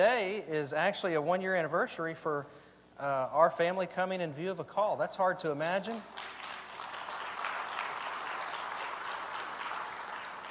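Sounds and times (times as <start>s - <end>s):
speech: 0.0s - 6.4s
audience applause: 6.0s - 10.4s.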